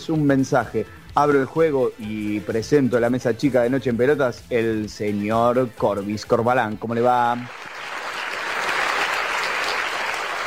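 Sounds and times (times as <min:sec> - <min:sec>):
speech: 0:00.0 - 0:07.7
crowd applauding: 0:07.4 - 0:10.4.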